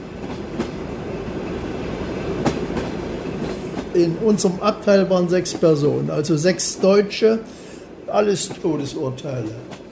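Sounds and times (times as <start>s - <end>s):
train from Berlin to Moscow rumbling along rails: 0.0s - 9.9s
speech: 4.0s - 9.8s.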